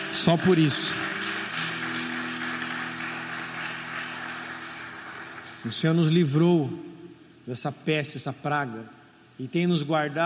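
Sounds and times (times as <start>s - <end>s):
audience applauding: 0.0s - 6.1s
speech: 0.2s - 1.1s, 5.6s - 6.9s, 7.5s - 10.2s.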